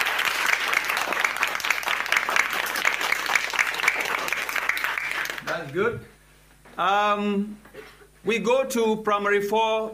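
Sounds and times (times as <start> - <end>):
applause: 0.0 - 5.7
speech: 5.6 - 6.2, 6.8 - 9.9.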